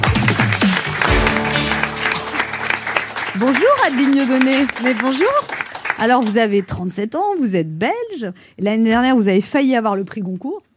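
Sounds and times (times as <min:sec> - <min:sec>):
audience applause: 0:00.0 - 0:06.6
speech: 0:03.4 - 0:10.7.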